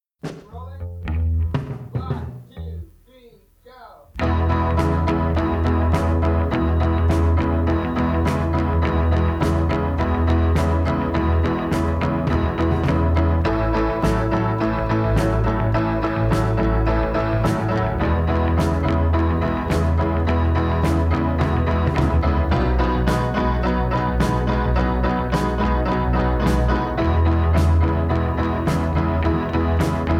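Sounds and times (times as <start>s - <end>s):
instrumental backing track: 0.2s - 30.1s.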